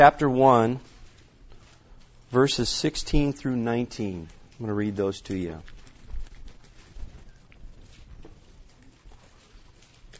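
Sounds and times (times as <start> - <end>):
speech: 0.0 - 0.9, 2.3 - 5.8
Bible pages rustling and flipping: 0.7 - 2.6, 4.0 - 10.1.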